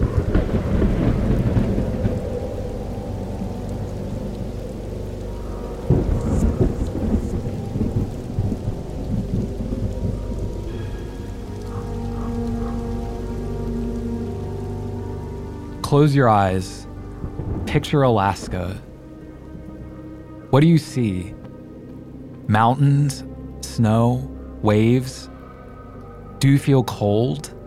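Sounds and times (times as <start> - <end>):
loud crack of thunder: 0.0 - 4.0, 5.9 - 10.8
deep thunder rumbling and rolling: 0.0 - 22.4
heavy rain pouring: 0.0 - 27.6
speech: 15.9 - 16.9, 17.7 - 18.9, 20.5 - 21.4, 22.5 - 25.3, 26.4 - 27.6.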